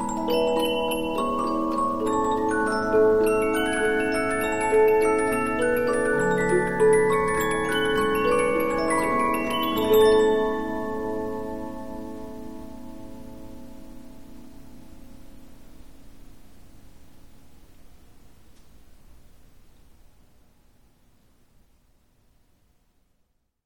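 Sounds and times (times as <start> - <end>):
Polyphon 15-inch disc music box playing: 0.0 - 12.8.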